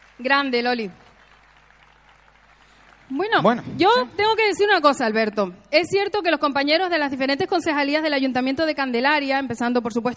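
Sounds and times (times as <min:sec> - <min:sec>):
crowd applauding: 0:00.0 - 0:04.8
speech: 0:00.2 - 0:01.0, 0:03.1 - 0:10.1.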